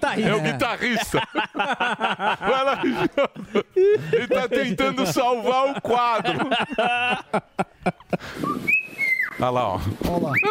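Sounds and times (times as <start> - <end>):
laughter: 0.0 - 8.5
speech: 0.1 - 8.8, 9.4 - 10.4
parrot whistling: 8.4 - 9.4.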